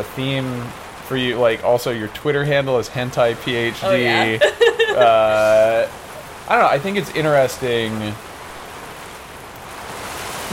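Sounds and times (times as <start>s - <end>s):
speech: 0.0s - 8.3s
heavy rain hitting the building: 0.0s - 10.5s
laughter: 3.7s - 5.9s.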